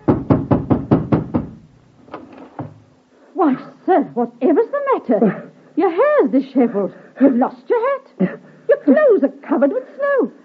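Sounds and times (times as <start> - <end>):
fist pounding a door: 0.0 - 1.7
speech: 3.4 - 10.4.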